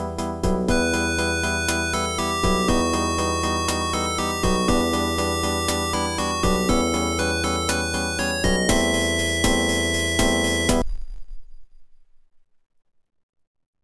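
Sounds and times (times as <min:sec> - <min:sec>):
AdLib OPL2 FM synth music: 0:00.0 - 0:10.8.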